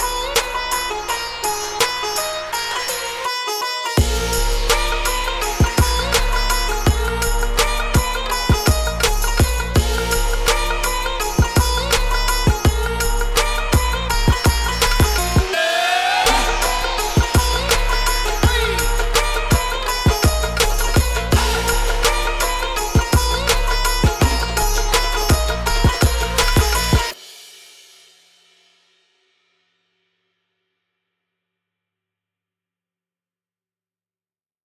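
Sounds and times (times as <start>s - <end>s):
Indian trap music: 0.0s - 27.2s.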